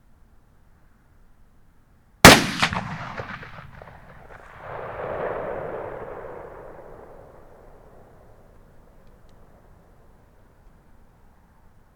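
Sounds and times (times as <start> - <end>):
gunshot: 2.3 - 8.2.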